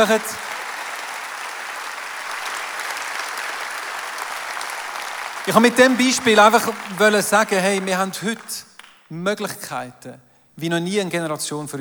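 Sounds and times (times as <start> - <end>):
speech: 0.0 - 0.5, 5.5 - 11.8
audience applause: 0.0 - 8.9.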